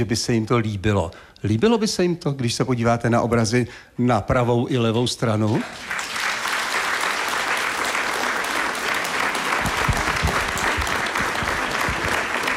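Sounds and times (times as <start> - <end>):
speech: 0.0 - 6.1
audience applause: 5.6 - 12.5.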